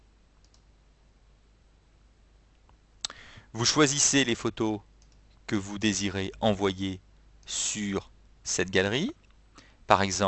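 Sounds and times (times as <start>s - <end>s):
computer mouse click on a button: 0.4s - 0.7s, 5.0s - 5.3s
speech: 3.5s - 4.9s, 5.5s - 9.2s, 9.9s - 10.2s.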